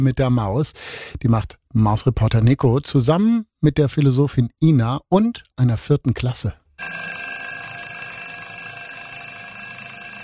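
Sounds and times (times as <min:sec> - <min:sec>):
speech: 0:00.0 - 0:07.2
alarm clock ringing: 0:06.8 - 0:10.2.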